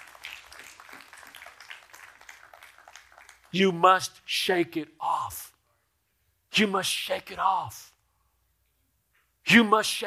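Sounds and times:
audience clapping: 0:00.0 - 0:03.8
speech: 0:03.5 - 0:05.5, 0:06.6 - 0:07.9, 0:09.5 - 0:10.0.

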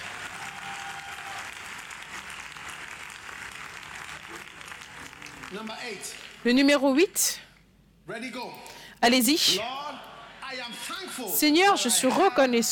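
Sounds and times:
audience cheering: 0:00.0 - 0:05.7
speech: 0:05.5 - 0:07.4, 0:08.1 - 0:09.8, 0:10.5 - 0:12.7.

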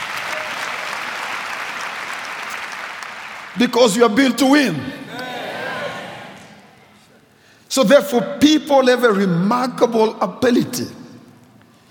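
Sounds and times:
audience applause: 0:00.0 - 0:03.6
speech: 0:03.6 - 0:05.1, 0:07.8 - 0:11.0.

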